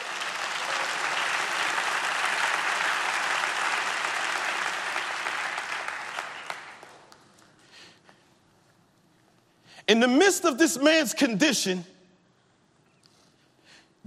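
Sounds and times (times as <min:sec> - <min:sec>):
audience hand clapping: 0:00.0 - 0:07.8
speech: 0:09.9 - 0:12.0.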